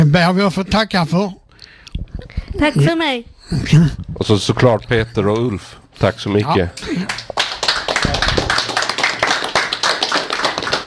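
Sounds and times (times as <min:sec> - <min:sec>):
speech: 0:00.1 - 0:01.4, 0:02.5 - 0:07.3
audience applause: 0:07.0 - 0:10.8.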